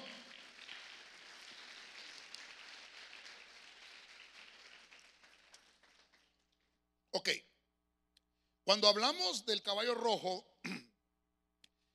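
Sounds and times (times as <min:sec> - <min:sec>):
church audience applauding: 0:00.0 - 0:06.6
speech: 0:07.2 - 0:07.5, 0:08.7 - 0:10.5.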